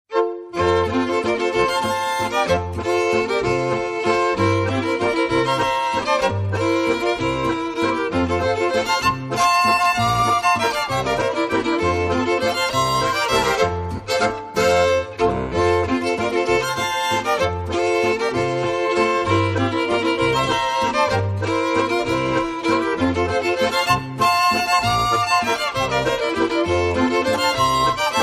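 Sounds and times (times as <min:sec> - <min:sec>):
waltz music: 0:00.1 - 0:28.2.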